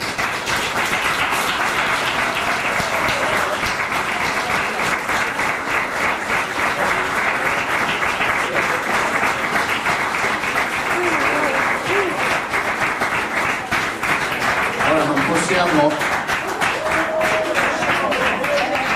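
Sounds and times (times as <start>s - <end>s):
audience applause: 0.0s - 18.9s
faint cheering or voices: 2.0s - 4.8s, 10.8s - 12.4s, 16.4s - 18.9s.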